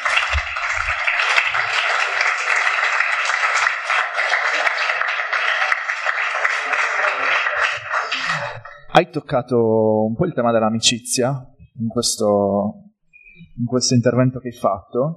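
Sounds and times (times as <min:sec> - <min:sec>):
audience applause: 0:00.0 - 0:08.9
speech: 0:09.0 - 0:12.8, 0:13.6 - 0:15.1.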